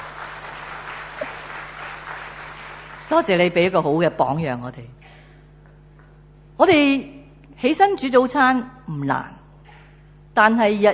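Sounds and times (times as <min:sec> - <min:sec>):
audience applause: 0:00.0 - 0:03.6
speech: 0:03.1 - 0:05.0, 0:06.6 - 0:09.4, 0:10.4 - 0:10.9.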